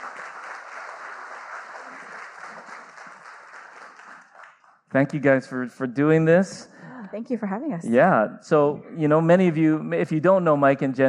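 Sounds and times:
church audience applause welcoming a couple to the stage: 0:00.0 - 0:04.8
speech: 0:04.9 - 0:11.0.

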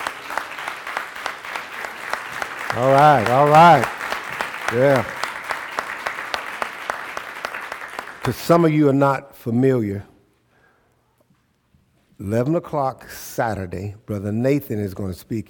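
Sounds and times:
audience clapping hands: 0:00.0 - 0:08.9
speech: 0:02.7 - 0:04.0, 0:04.7 - 0:05.2, 0:08.2 - 0:10.1, 0:12.2 - 0:15.4.

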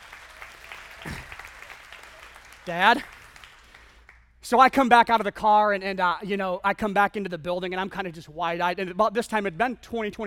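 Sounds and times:
audience applause: 0:00.0 - 0:04.1
speech: 0:02.6 - 0:03.2, 0:04.5 - 0:10.2.

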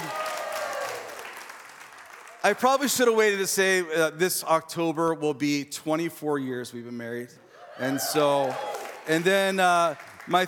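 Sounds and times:
audience applause: 0:00.0 - 0:03.4, 0:07.8 - 0:10.4
speech: 0:02.4 - 0:10.4.

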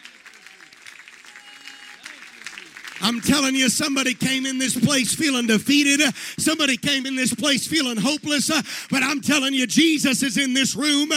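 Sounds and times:
audience clapping hands: 0:00.0 - 0:05.5
speech: 0:03.0 - 0:11.1.

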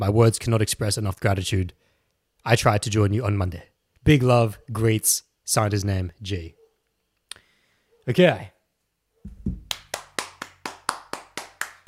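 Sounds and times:
speech: 0:00.0 - 0:06.6, 0:08.0 - 0:08.6
fast hand clapping: 0:09.4 - 0:11.8.

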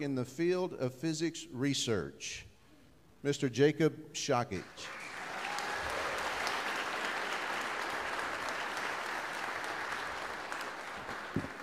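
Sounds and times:
speech: 0:00.0 - 0:02.5, 0:03.2 - 0:05.0
audience applause: 0:04.8 - 0:11.6.

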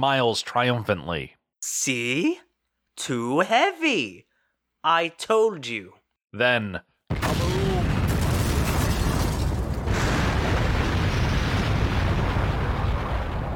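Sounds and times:
speech: 0:00.0 - 0:07.6
ship explosion roaring: 0:07.1 - 0:13.5.

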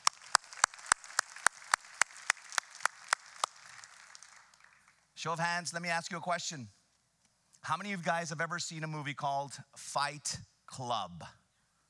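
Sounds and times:
audience applause: 0:00.0 - 0:05.0
speech: 0:05.2 - 0:06.8, 0:07.7 - 0:11.4.

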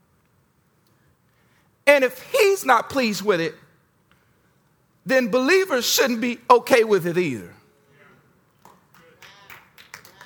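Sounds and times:
speech: 0:02.0 - 0:03.6, 0:05.0 - 0:07.6
single hand clap: 0:08.6 - 0:10.2.

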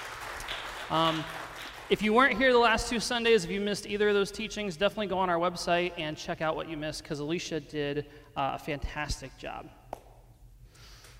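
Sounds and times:
audience clapping: 0:00.0 - 0:02.5
speech: 0:00.9 - 0:09.8.

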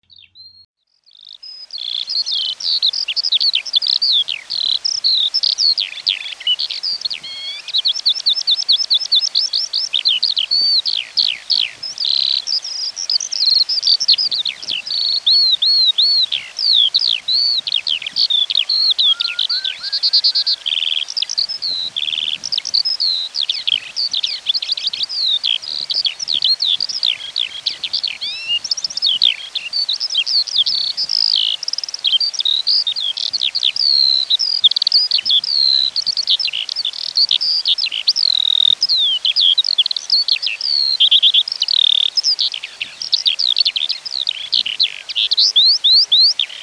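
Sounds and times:
skylark: 0:00.0 - 0:46.6.

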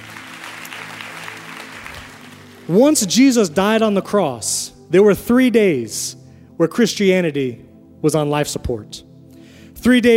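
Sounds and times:
audience applause: 0:00.0 - 0:02.7
speech: 0:02.7 - 0:09.1, 0:09.8 - 0:10.1.

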